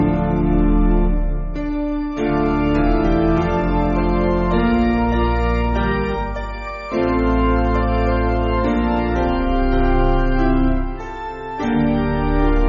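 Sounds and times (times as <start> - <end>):
piano: 0.0 - 12.6.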